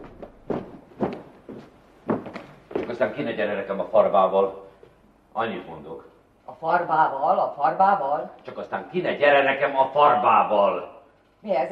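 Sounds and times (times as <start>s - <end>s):
footsteps walking toward a door: 0.0s - 3.2s
quiet hiss: 0.0s - 11.7s
speech: 2.9s - 4.7s, 5.4s - 11.7s.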